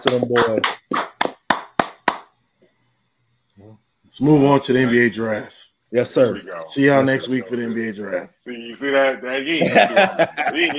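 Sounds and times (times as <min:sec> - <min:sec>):
speech: 0:00.0 - 0:01.0, 0:04.1 - 0:10.7
hand clapping: 0:00.0 - 0:02.4
laughter: 0:09.6 - 0:10.7.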